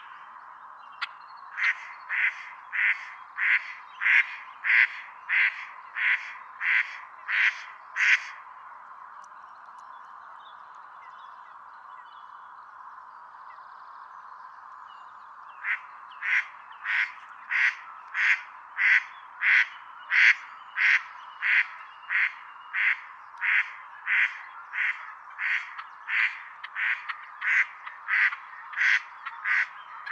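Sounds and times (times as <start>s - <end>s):
female mallard quacking: 1.6s - 8.3s, 15.6s - 30.1s.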